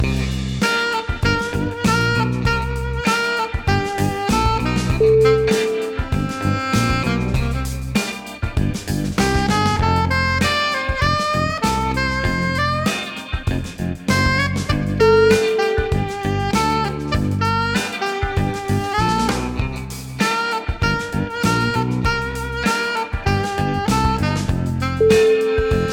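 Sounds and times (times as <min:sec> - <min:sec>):
funk music: 0:00.0 - 0:25.9.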